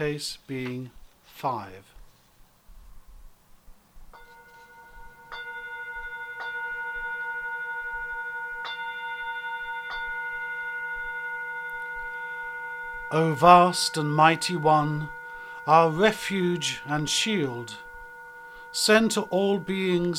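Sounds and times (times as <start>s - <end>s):
speech: 0.0s - 1.9s, 13.1s - 17.8s, 18.8s - 20.1s
bell ringing: 4.2s - 20.1s.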